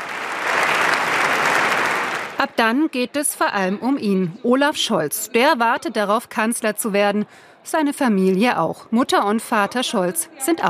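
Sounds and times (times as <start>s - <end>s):
applause in the Bundestag: 0.0s - 2.6s
speech: 2.4s - 10.6s.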